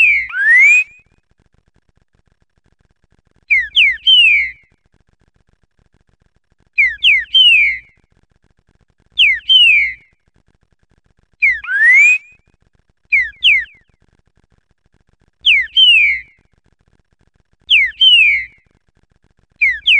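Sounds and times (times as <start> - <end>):
green-winged saltator song of rich slurred rising and falling whistles: 0.0 - 1.0, 3.5 - 4.6, 6.8 - 7.9, 9.2 - 10.0, 11.4 - 12.4, 13.1 - 13.8, 15.4 - 16.4, 17.7 - 18.6, 19.6 - 19.9.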